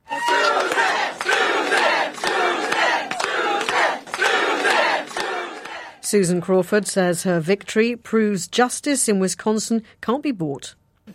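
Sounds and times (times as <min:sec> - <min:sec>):
jubilant supporters cheering at victory rally: 0:00.0 - 0:06.0
supporters clapping and whooping: 0:00.0 - 0:06.0
speech: 0:06.1 - 0:11.1.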